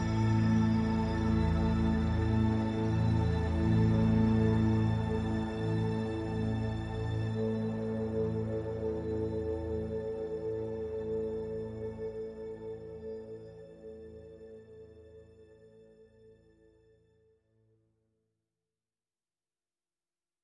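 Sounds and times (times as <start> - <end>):
strings: 0.0 - 13.4
synth pads: 0.0 - 15.1.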